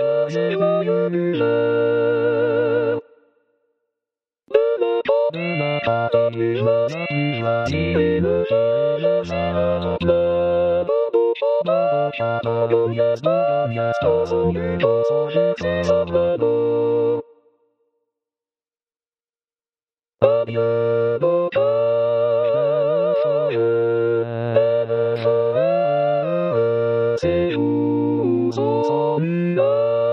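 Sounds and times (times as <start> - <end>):
synth choir: 0.0 - 3.2, 4.5 - 17.4, 20.2 - 30.1.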